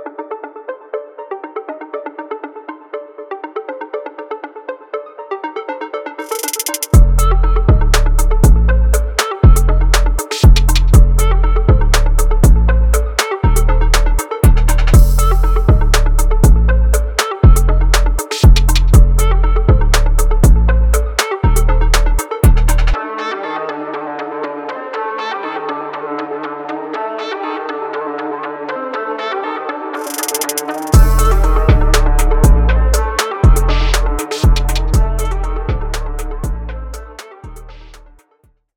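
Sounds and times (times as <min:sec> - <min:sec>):
trap beat: 0:06.2 - 0:23.0, 0:30.0 - 0:38.2.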